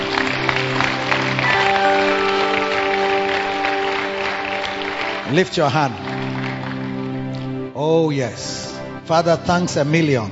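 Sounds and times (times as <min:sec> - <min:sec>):
audience clapping: 0:00.0 - 0:07.8
speech: 0:05.3 - 0:06.1, 0:07.8 - 0:10.3.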